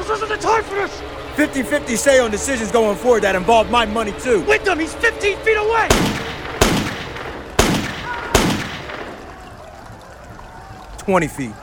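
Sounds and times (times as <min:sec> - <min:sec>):
speech: 0:00.2 - 0:06.8, 0:11.1 - 0:11.6
gunshots from a five-shot prototype revolver: 0:05.9 - 0:09.3.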